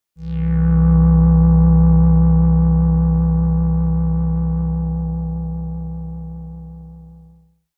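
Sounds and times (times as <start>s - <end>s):
synth: 0.2s - 7.1s.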